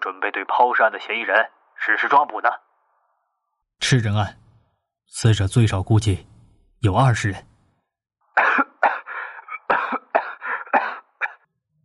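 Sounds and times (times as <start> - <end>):
speech: 0.0 - 2.6, 3.8 - 4.4, 5.1 - 7.5
coughing after spitting out water: 8.4 - 11.5.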